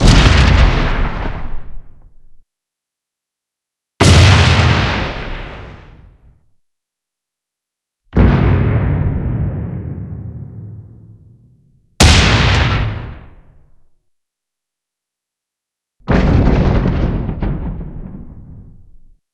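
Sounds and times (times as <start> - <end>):
bomb explosion boom: 0.0 - 2.4, 4.0 - 6.3, 8.2 - 13.8, 16.1 - 19.2.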